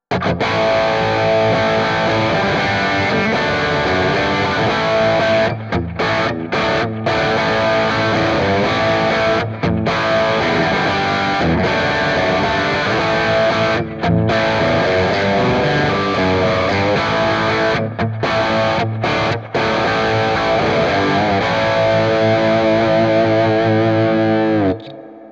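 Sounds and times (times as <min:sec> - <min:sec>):
dirty rhythm guitar through Quad Cortex: 0:00.0 - 0:25.3.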